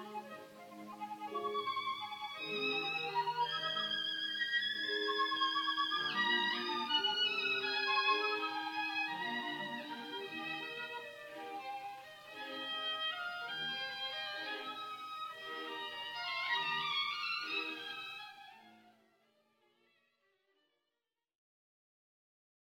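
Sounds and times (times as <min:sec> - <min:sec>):
live violin concerto: 0:00.0 - 0:19.1.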